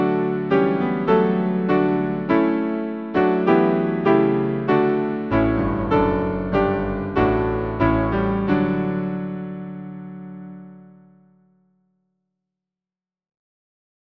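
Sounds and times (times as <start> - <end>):
hymn played on piano: 0.0 - 11.2.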